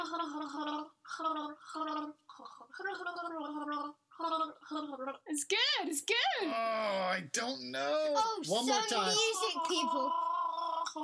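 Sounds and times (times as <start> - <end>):
person gargling water while voicing a tune: 0.0 - 5.2, 9.1 - 11.0
speech: 0.1 - 10.3.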